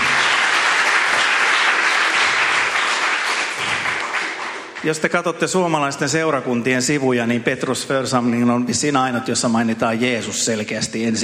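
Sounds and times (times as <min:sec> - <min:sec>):
audience applause: 0:00.0 - 0:05.0
speech: 0:04.8 - 0:11.2.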